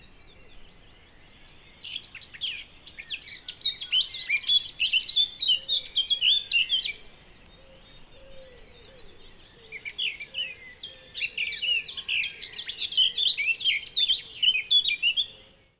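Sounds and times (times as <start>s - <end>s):
Eurasian blackcap song: 0.0s - 15.4s.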